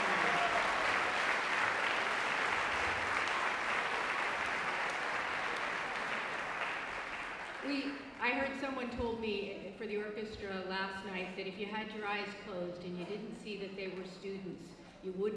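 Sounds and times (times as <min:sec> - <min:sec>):
audience applause: 0:00.0 - 0:07.9
speech: 0:07.7 - 0:15.3.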